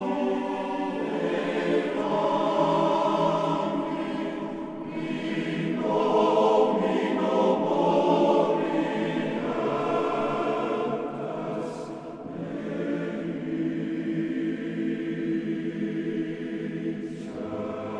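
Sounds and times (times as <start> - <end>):
male choir singing: 0.0 - 17.9.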